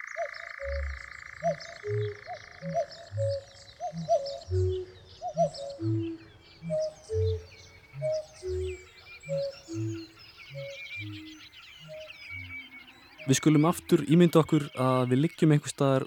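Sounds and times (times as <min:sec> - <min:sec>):
dove-like cooing: 0:00.0 - 0:12.6
birds chirping and warbling: 0:00.0 - 0:16.0
speech: 0:00.2 - 0:04.8, 0:05.4 - 0:07.4, 0:13.3 - 0:16.0.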